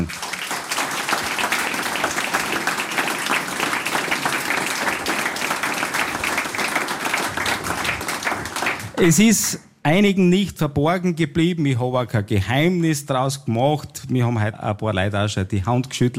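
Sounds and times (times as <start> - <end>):
audience applause: 0.0 - 9.2
speech: 9.0 - 16.1.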